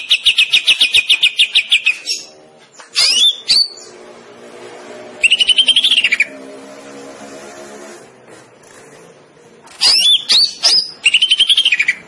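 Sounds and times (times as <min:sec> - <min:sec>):
greater green leafbird song with trills and whistles: 0:00.0 - 0:04.0, 0:05.2 - 0:06.4, 0:09.8 - 0:12.0.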